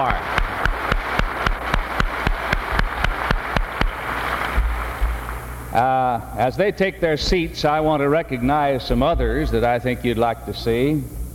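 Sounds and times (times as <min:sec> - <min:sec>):
audience applause: 0:00.0 - 0:05.5
speech: 0:05.8 - 0:11.2.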